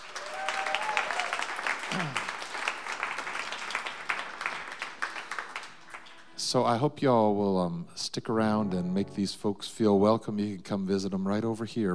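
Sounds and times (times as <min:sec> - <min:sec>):
audience applause for a live music act: 0:00.0 - 0:06.3
speech: 0:06.5 - 0:11.9.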